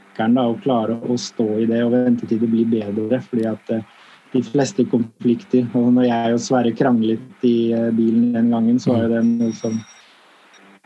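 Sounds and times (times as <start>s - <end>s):
speech: 0.2s - 10.0s
doorbell ringing: 9.0s - 10.2s.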